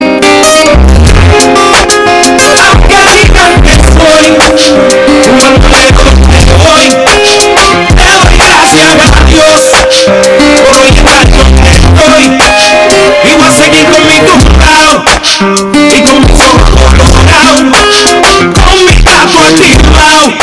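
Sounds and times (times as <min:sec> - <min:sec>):
boosted bass: 0:00.0 - 0:15.2, 0:16.0 - 0:17.8, 0:18.5 - 0:20.3.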